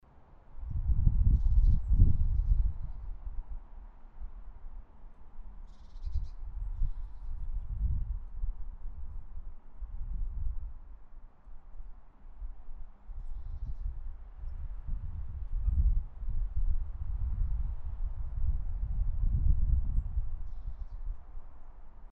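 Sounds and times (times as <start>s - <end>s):
outdoor ambience recorded without windscreen: 0.0s - 22.1s.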